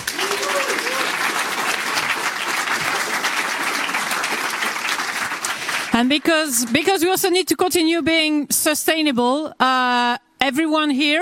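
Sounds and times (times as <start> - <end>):
audience applause: 0.0 - 6.8
speech: 6.0 - 11.2.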